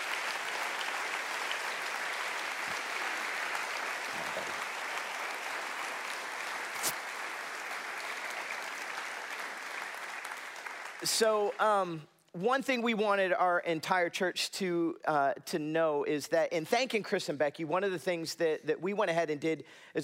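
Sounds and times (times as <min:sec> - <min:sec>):
crowd applause: 0:00.0 - 0:11.1
speech: 0:11.0 - 0:20.0.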